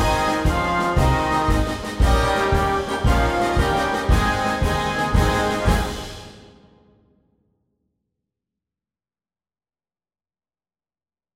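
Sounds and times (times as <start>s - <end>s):
march music: 0.0s - 6.8s.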